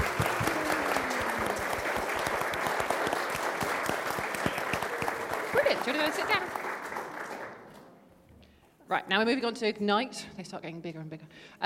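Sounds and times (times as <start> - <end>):
audience applause for children: 0.0 - 7.8
speech: 5.8 - 6.6, 8.9 - 11.6.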